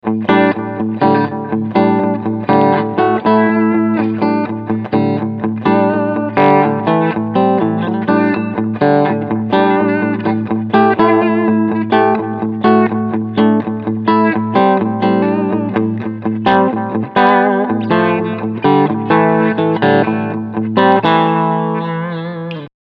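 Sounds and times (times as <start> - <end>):
clean electric guitar: 0.0 - 22.7.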